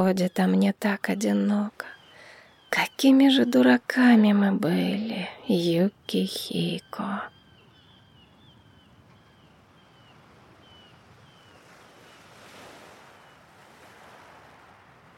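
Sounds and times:
speech: 0.0 - 2.0, 2.7 - 7.3
waves rolling onto the shore at night during a rising tide: 10.2 - 15.1.

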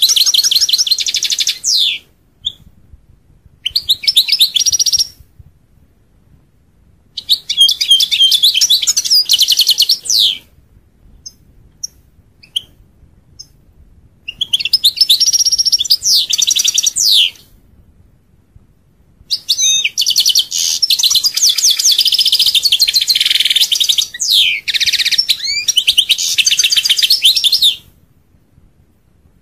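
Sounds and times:
European goldfinch twittering song: 0.0 - 2.6, 3.6 - 5.2, 7.2 - 10.4, 14.3 - 17.4, 19.3 - 27.8.

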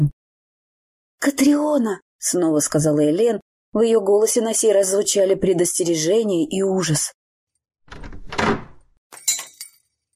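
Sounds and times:
speech: 1.2 - 7.2, 7.9 - 8.5
shop door opening: 7.9 - 9.0.

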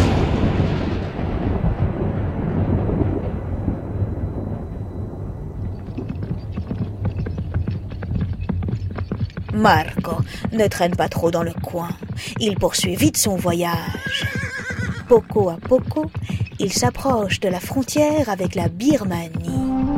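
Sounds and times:
loud thunderclaps in a storm: 0.0 - 19.9
speech: 9.6 - 14.4, 15.1 - 19.6.

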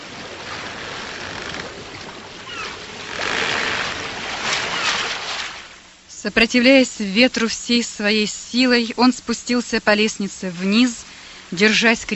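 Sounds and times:
stormy sea waves crashing: 0.0 - 6.1
speech: 6.2 - 12.1.

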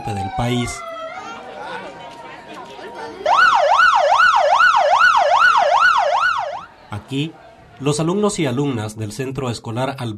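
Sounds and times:
earthquake drill alarm siren wailing: 0.0 - 1.7, 3.2 - 6.7
murmur of noise: 0.0 - 10.1
speech: 0.1 - 0.9, 7.1 - 10.1.

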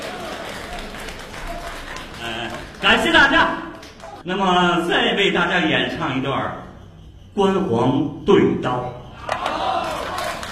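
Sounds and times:
audience applauding at a Beijing traditional opera and folk-art performance: 0.0 - 4.2, 9.4 - 10.4
speech: 2.8 - 3.6, 4.2 - 6.6, 7.4 - 9.0.

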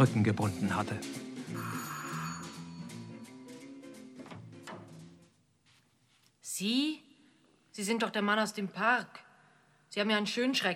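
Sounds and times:
speech: 0.0 - 1.9, 6.6 - 7.1, 7.8 - 9.2, 9.9 - 10.7
doorbell ringing with sustained tonal chimes: 1.5 - 3.2.

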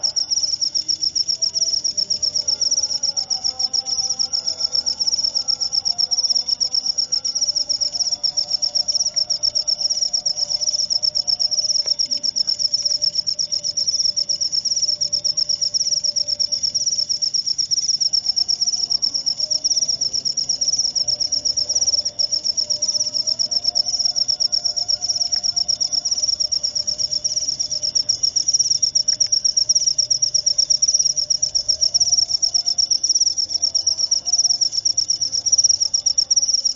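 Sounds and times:
cricket fast pulsed trill: 0.0 - 36.7.

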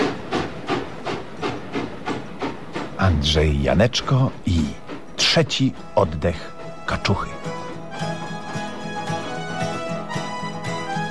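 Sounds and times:
steam hissing: 0.0 - 6.8
train setting off: 0.0 - 11.0
speech: 3.0 - 7.4.

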